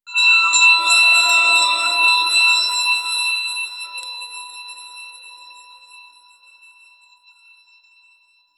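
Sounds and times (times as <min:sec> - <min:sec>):
sparkling treasure discovery sound: 0:00.1 - 0:04.2.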